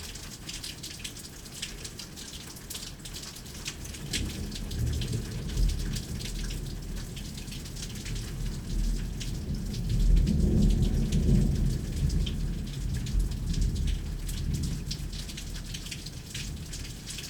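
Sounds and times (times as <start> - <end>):
thunderstorm: 4.0 - 17.0.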